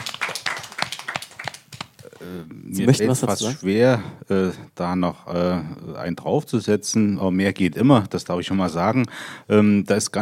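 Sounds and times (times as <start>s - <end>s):
audience applause: 0.0s - 2.0s
speech: 2.2s - 10.2s.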